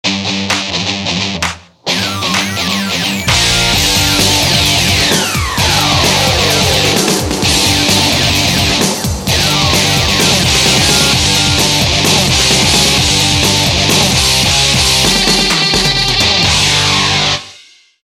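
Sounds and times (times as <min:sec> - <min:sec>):
metal music: 0:00.1 - 0:17.6.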